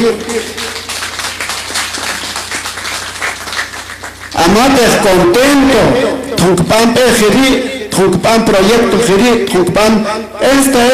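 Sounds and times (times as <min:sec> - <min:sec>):
audience applause: 0:00.0 - 0:04.4
low steady hum: 0:00.0 - 0:10.9
speech: 0:00.1 - 0:00.6, 0:04.4 - 0:10.9.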